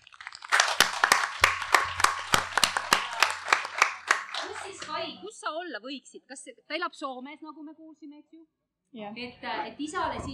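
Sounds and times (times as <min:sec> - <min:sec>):
small studio audience applause: 0:00.0 - 0:05.0
speech: 0:05.0 - 0:10.3.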